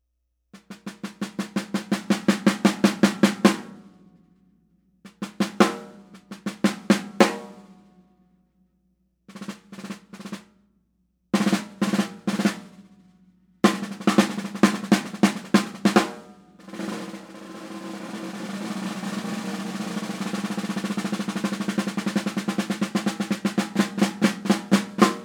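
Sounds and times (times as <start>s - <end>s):
Ludwig 7x14 Abalone snare drum: 0.6s - 4.0s, 5.1s - 8.0s, 9.3s - 10.5s, 11.4s - 25.2s.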